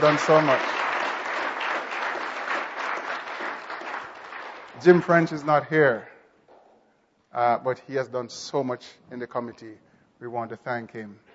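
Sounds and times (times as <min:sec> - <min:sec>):
speech: 0:00.0 - 0:00.8, 0:04.8 - 0:06.1, 0:07.3 - 0:11.3
audience applause: 0:00.0 - 0:05.2.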